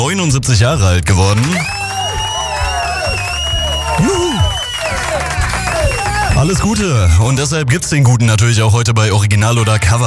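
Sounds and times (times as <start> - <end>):
speech: 0.1 - 1.8, 4.0 - 4.3, 6.4 - 10.0
applause and cheering: 1.2 - 6.9.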